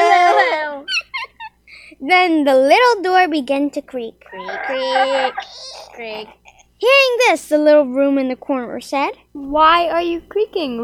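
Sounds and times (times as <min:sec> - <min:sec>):
voice imitating loud weeping: 0:00.0 - 0:01.4, 0:04.3 - 0:06.7
speech: 0:02.0 - 0:10.8.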